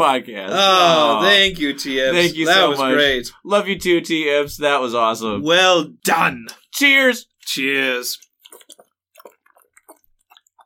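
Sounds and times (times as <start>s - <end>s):
speech: 0.0s - 8.3s
loud drinking from a water bottle: 8.1s - 10.6s.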